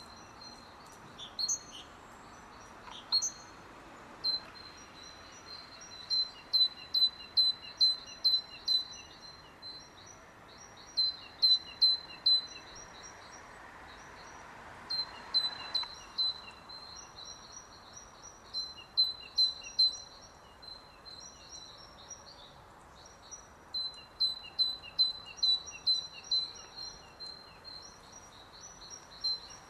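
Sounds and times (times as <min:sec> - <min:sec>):
great tit two-note song: 0:00.0 - 0:03.6, 0:04.2 - 0:14.3, 0:14.9 - 0:29.6.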